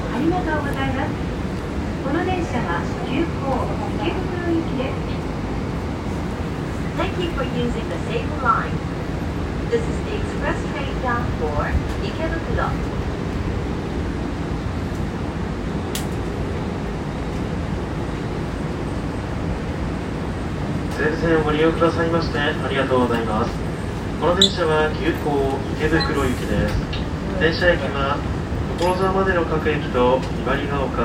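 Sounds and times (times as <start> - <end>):
train on the Seibu Ikebukuro Line east of Hanno Station: 0.0 - 31.0.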